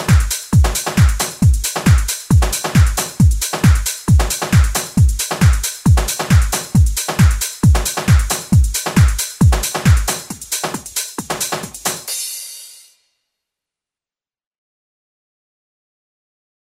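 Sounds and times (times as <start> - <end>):
dance music: 0.0 - 12.7.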